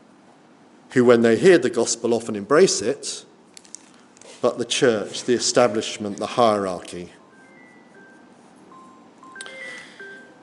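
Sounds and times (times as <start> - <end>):
faint hiss: 0.0 - 10.4
speech: 0.9 - 3.3, 4.4 - 7.2
mobile phone ringing with electronic tones: 7.2 - 10.4.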